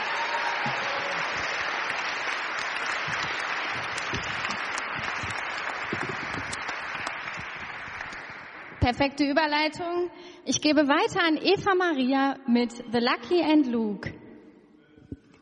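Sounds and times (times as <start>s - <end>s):
audience applause: 0.0s - 8.8s
speech: 8.9s - 14.2s.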